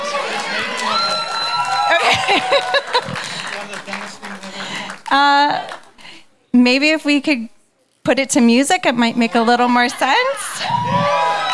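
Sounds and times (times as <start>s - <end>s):
laughter: 0.0s - 5.0s, 9.1s - 11.5s
group clapping hands in rhythm: 0.0s - 6.0s
speech: 5.1s - 5.7s, 6.6s - 11.1s.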